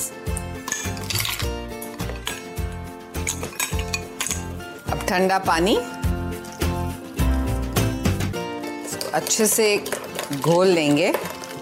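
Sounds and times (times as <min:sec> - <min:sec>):
steady rhythmic background: 0:00.0 - 0:09.2
ice cubes clattering into a glass: 0:00.3 - 0:02.6, 0:03.2 - 0:04.6, 0:08.8 - 0:11.6
speech: 0:05.1 - 0:06.0, 0:09.2 - 0:11.6.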